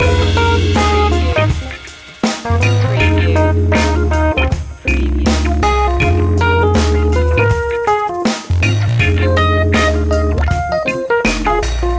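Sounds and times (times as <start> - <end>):
music loop: 0.0 - 11.9.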